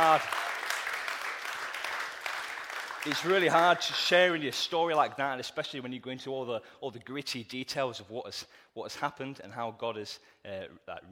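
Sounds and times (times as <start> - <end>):
speech: 0.0 - 0.4, 3.0 - 11.1
round of applause: 0.0 - 4.6.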